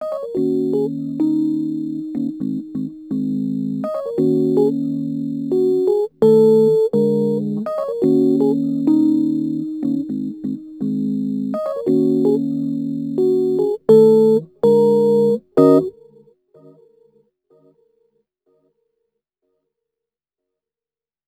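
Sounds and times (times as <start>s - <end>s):
Rhodes electric piano attacks: 0.0s - 15.9s.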